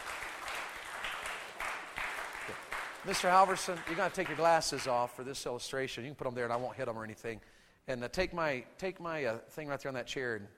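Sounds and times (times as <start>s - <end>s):
audience applause: 0.0s - 4.9s
speech: 3.0s - 10.5s.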